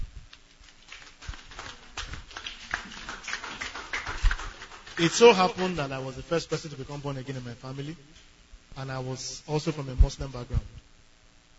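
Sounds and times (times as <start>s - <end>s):
round of applause: 0.6s - 6.6s
speech: 5.0s - 10.8s.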